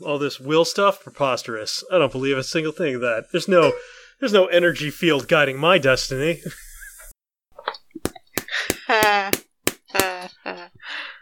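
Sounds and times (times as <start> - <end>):
speech: 0.0 - 6.7
hand clapping: 8.0 - 10.3.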